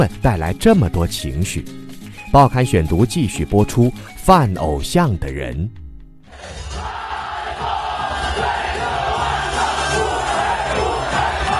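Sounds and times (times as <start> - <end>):
speech: 0.0 - 5.8
audience cheering and shouting at a live idol show: 6.3 - 11.5.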